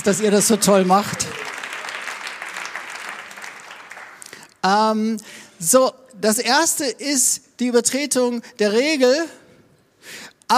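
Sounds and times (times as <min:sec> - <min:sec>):
speech: 0:00.0 - 0:01.4, 0:04.6 - 0:09.4, 0:10.0 - 0:10.5
audience applause: 0:00.0 - 0:04.4.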